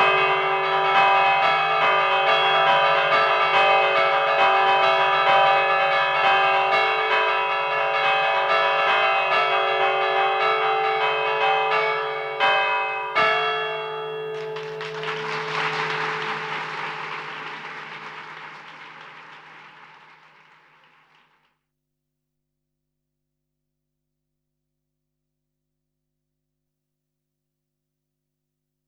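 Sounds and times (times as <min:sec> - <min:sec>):
church bells ringing in a peal: 0:00.0 - 0:18.6.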